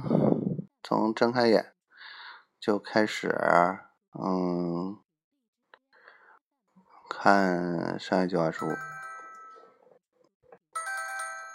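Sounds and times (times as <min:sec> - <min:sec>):
speech: 0:00.9 - 0:01.7, 0:02.6 - 0:05.0, 0:07.1 - 0:08.9
phone message alert electronic melodic tone: 0:08.6 - 0:09.8, 0:10.8 - 0:11.5.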